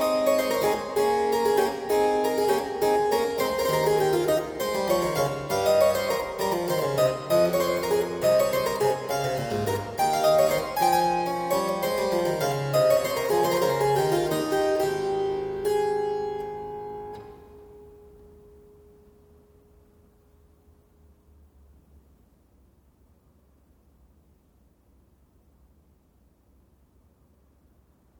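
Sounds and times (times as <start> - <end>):
keyboard minuet in A: 0.0 - 17.7.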